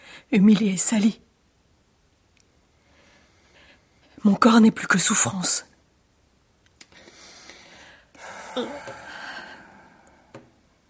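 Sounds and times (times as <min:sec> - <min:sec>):
speech: 0:00.3 - 0:01.3, 0:04.2 - 0:05.7, 0:08.6 - 0:08.8
heavy ragged breathing: 0:07.0 - 0:10.3.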